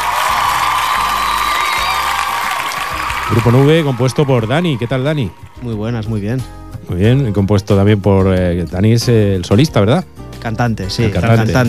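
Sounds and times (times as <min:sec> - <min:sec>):
crowd applause: 0:00.0 - 0:06.2
speech: 0:03.3 - 0:11.6.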